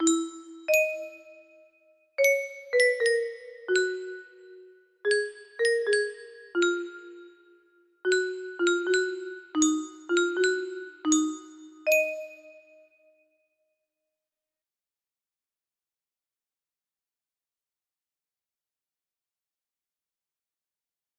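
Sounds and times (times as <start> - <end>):
music box melody: 0.0 - 1.6, 2.2 - 12.8.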